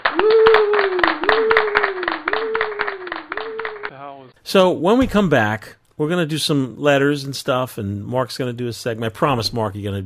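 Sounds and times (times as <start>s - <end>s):
hand clap as sync clapper: 0.0s - 4.1s
speech: 4.5s - 10.0s.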